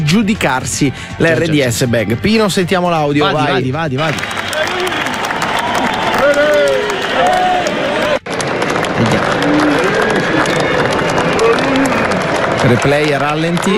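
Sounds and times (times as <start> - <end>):
speech: 0.1 - 5.0, 12.7 - 13.7
enthusiastic crowd applauding: 3.3 - 13.7.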